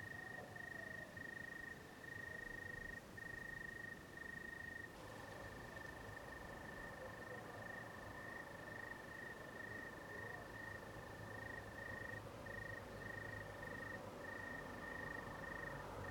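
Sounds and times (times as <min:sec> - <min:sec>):
night soundscape: 0:00.0 - 0:16.0.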